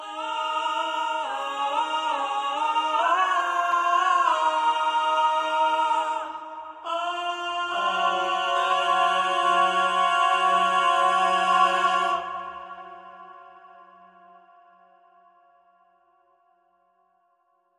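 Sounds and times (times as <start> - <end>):
male choir singing a finale: 0.0 - 13.6.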